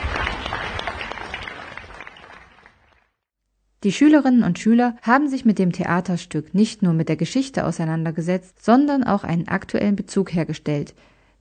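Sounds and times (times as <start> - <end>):
audience applauding at end of play: 0.0 - 3.2
speech: 3.8 - 11.1.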